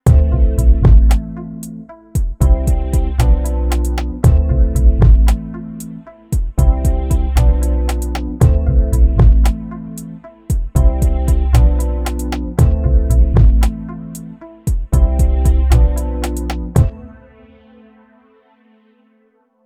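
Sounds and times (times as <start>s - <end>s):
dark soul music on Yamaha QY100: 0.0s - 19.6s.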